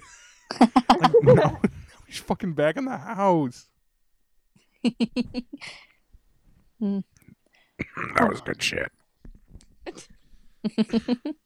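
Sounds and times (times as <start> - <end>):
laughter: 0.0 - 2.0
speech: 2.3 - 3.7, 4.8 - 5.9, 6.8 - 7.2, 7.9 - 9.0, 9.9 - 11.4
burping: 7.8 - 8.6.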